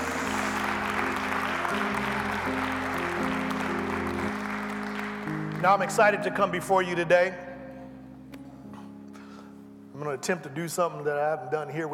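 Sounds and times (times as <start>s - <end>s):
audience clapping hands in praise: 0.0s - 6.2s
speech: 5.6s - 7.5s, 10.0s - 11.9s.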